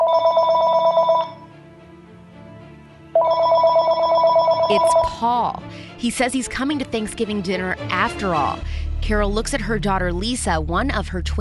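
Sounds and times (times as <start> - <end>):
telephone ringing: 0.0 - 1.5, 3.2 - 5.2
speech: 4.7 - 11.3.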